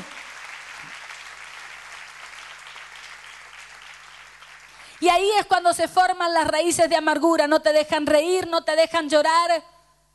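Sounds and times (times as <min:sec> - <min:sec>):
audience applause: 0:00.0 - 0:05.0
speech: 0:05.0 - 0:09.7.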